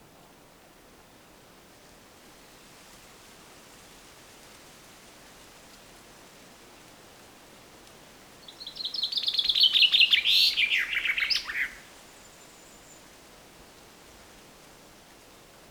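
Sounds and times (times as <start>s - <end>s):
Common chaffinch Fringilla coelebs singing descending trilled phrases: 8.5s - 11.8s.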